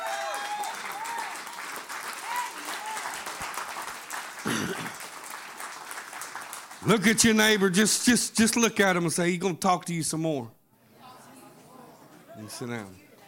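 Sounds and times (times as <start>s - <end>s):
audience hand clapping: 0.0s - 7.9s
speech: 6.8s - 10.6s, 12.5s - 13.0s.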